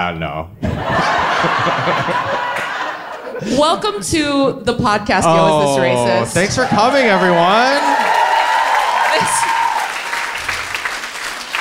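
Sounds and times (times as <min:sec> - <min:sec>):
speech: 0:00.0 - 0:08.1
laughter: 0:00.6 - 0:04.0
live audience applause: 0:00.9 - 0:03.3, 0:06.2 - 0:11.5.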